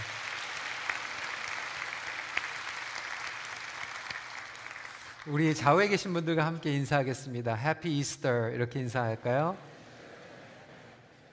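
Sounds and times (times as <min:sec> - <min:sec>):
audience applause: 0:00.0 - 0:05.9
speech: 0:05.2 - 0:09.7.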